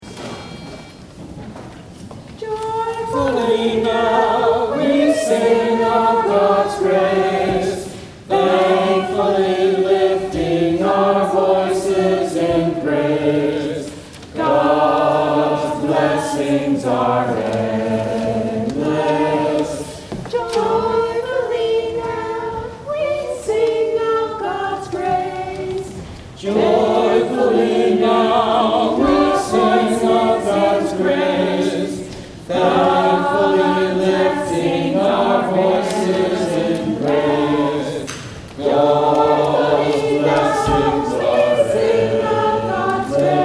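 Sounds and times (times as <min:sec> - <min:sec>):
family choir singing: 0:02.4 - 0:43.4.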